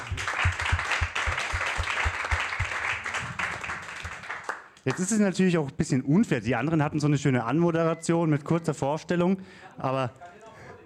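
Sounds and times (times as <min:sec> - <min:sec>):
audience applause: 0:00.0 - 0:05.2
speech: 0:04.8 - 0:10.8.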